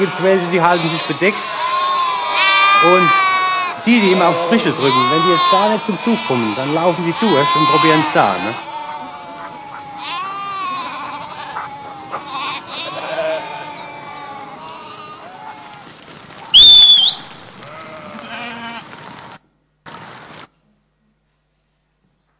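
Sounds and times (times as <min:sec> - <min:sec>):
speech: 0:00.0 - 0:01.7, 0:02.8 - 0:03.2, 0:03.8 - 0:08.7
flock of sheep bleating loudly: 0:00.0 - 0:15.9, 0:17.0 - 0:18.8.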